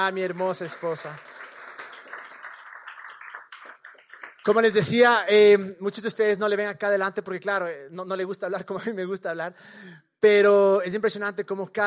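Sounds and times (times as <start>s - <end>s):
speech: 0.0s - 1.4s, 4.4s - 11.8s
audience applause: 0.0s - 4.9s.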